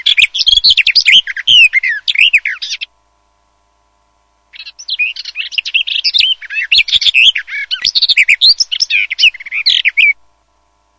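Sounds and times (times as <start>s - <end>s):
garden warbler warbling song: 0.0s - 3.0s, 4.5s - 10.2s.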